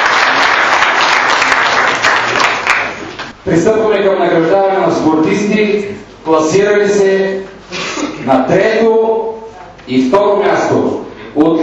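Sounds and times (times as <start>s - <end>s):
audience applause: 0.0s - 3.3s
speech: 3.4s - 7.5s, 8.2s - 9.0s, 9.9s - 11.6s.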